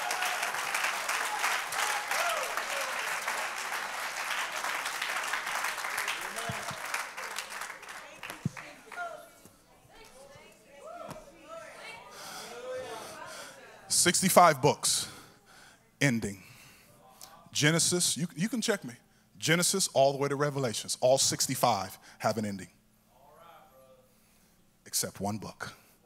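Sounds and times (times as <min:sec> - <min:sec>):
audience clapping hands: 0:00.0 - 0:09.2
speech: 0:14.0 - 0:15.1, 0:16.0 - 0:16.4, 0:17.6 - 0:22.8, 0:25.0 - 0:25.8.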